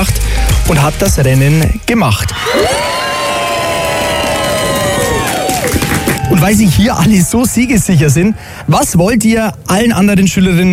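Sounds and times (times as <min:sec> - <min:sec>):
speech: 0:00.7 - 0:03.0, 0:06.3 - 0:10.7
large school crowd of children cheering and screaming: 0:02.3 - 0:07.5
school crowd applauding: 0:02.4 - 0:07.2.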